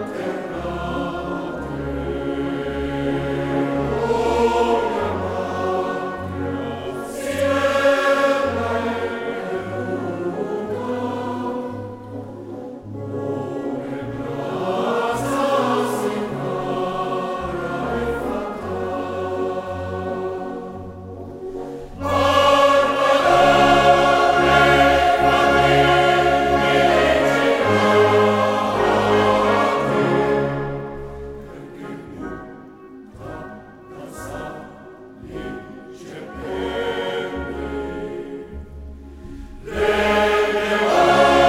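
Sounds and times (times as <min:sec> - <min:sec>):
wind band playing live: 0:00.0 - 0:38.9, 0:39.7 - 0:41.4
four concert choirs singing live: 0:00.0 - 0:41.4.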